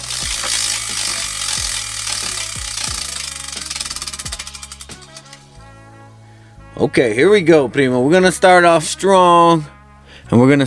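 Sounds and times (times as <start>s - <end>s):
prize wheel spinning: 0.0s - 5.6s
speech: 6.8s - 10.6s.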